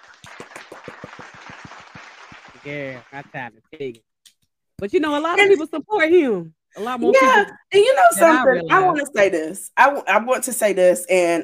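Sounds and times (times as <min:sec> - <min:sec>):
hand claps: 0:00.0 - 0:04.0
speech: 0:02.6 - 0:04.1, 0:04.8 - 0:11.4.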